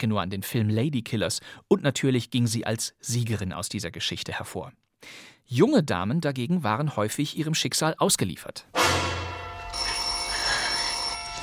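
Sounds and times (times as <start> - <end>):
speech: 0.0 - 9.1
telephone bell ringing in a 1958 radio crime play: 9.3 - 11.4.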